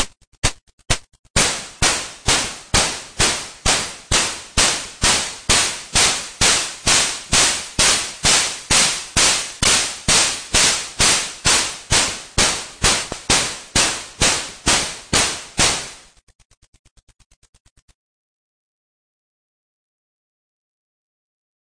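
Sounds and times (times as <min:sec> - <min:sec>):
snare drum: 0:00.0 - 0:16.2.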